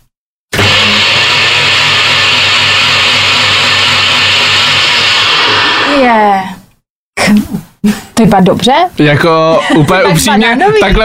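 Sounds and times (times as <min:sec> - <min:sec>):
blender making a smoothie: 0:00.5 - 0:06.5
speech: 0:07.3 - 0:11.0
laughter: 0:09.3 - 0:11.0.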